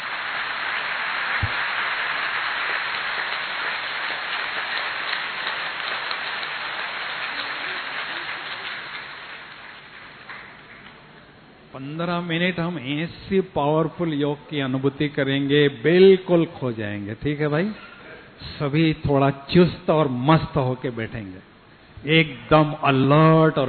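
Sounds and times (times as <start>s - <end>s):
audience clapping loudly: 0.0s - 11.0s
speech: 11.8s - 17.9s, 18.6s - 23.6s.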